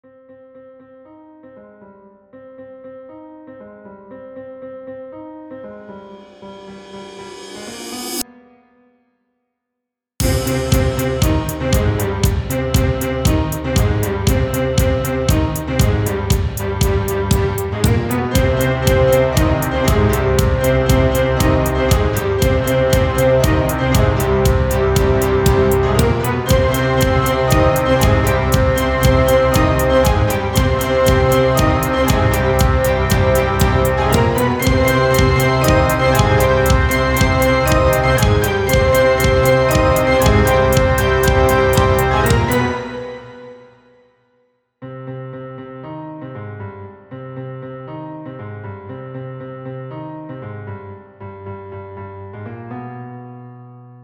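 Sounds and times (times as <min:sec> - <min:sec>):
intro music: 0:10.2 - 0:43.9.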